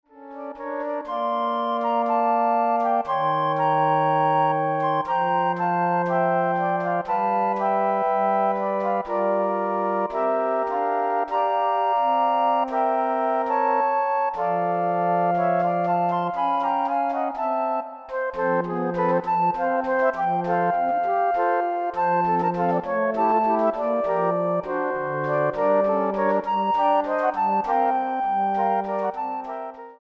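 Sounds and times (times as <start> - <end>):
flute ensemble playing: 0.3 - 29.9.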